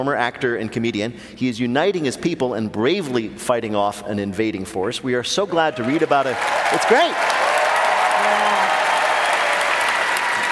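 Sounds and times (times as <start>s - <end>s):
speech: 0.0s - 7.5s
audience applause: 5.5s - 10.5s.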